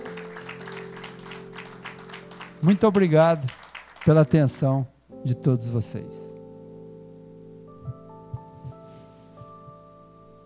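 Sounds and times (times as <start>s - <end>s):
audience applause: 0.0s - 4.4s
speech: 2.6s - 6.2s.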